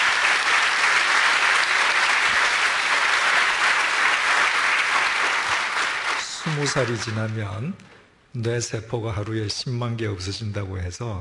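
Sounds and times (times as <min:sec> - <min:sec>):
audience applause: 0:00.0 - 0:07.6
speech: 0:06.6 - 0:11.1.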